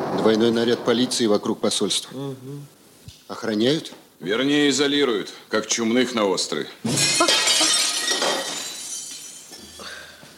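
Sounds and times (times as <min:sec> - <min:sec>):
speech: 0:00.2 - 0:07.4
window glass being smashed: 0:06.8 - 0:09.6.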